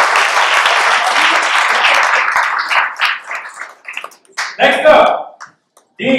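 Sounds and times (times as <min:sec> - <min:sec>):
crowd applauding: 0:00.0 - 0:04.9
speech: 0:06.0 - 0:06.1.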